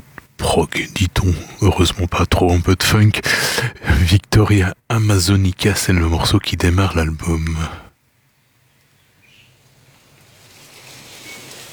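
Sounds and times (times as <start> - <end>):
speech: 0.5 - 7.8
rain in the Amazon rainforest: 10.1 - 11.7.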